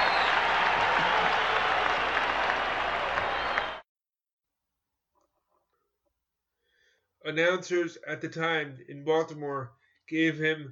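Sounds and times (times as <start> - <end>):
large stadium crowd cheering and applauding: 0.0 - 3.8
speech: 7.3 - 10.6.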